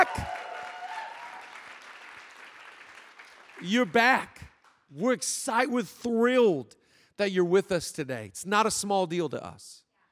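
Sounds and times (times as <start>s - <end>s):
bright whoops and shouts: 0.0s - 1.5s
large crowd cheering: 0.0s - 4.0s
large crowd clapping: 0.0s - 4.8s
speech: 3.6s - 9.8s.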